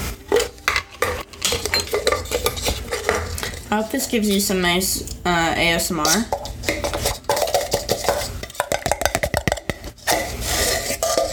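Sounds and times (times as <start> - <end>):
metal tablespoon scraping and clinking while spooning baking powder into flour: 0.3 - 5.2, 6.0 - 11.3
speech: 3.7 - 6.4.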